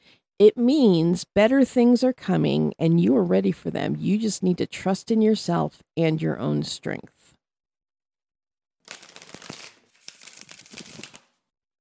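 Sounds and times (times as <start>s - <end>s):
speech: 0.4s - 7.2s
tarot cards being shuffled and drawn: 8.9s - 11.4s.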